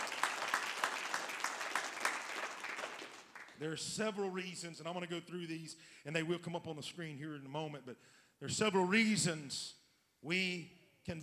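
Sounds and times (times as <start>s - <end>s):
audience clapping hands: 0.0s - 3.7s
speech: 3.6s - 11.2s.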